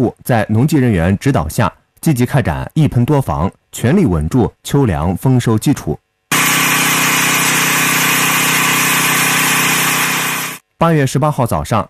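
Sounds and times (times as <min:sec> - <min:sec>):
speech: 0:00.0 - 0:06.0, 0:10.8 - 0:11.8
agricultural drone spraying corn field: 0:06.3 - 0:10.6.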